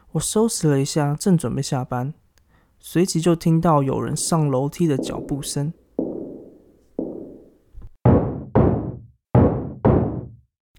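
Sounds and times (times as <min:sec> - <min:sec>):
speech: 0:00.1 - 0:02.2, 0:02.8 - 0:05.8
knocking on a door: 0:04.2 - 0:10.4.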